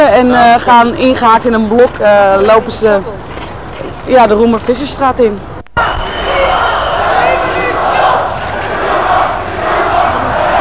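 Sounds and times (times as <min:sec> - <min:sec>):
speech: 0:00.2 - 0:03.3, 0:04.1 - 0:06.0
crowd shouting: 0:05.8 - 0:10.5.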